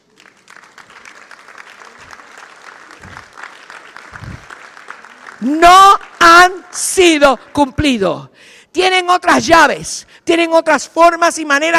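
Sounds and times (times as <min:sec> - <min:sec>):
audience applauding: 0:00.0 - 0:06.7
speech: 0:05.4 - 0:11.7.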